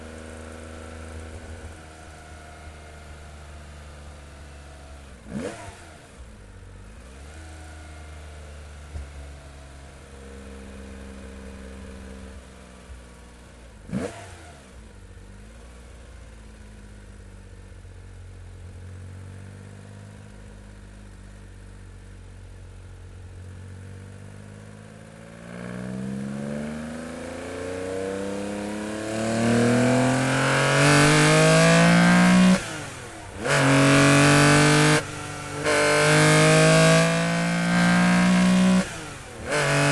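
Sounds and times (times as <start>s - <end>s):
Porsche 911 engine during fast onboard drive: 0.0s - 39.8s.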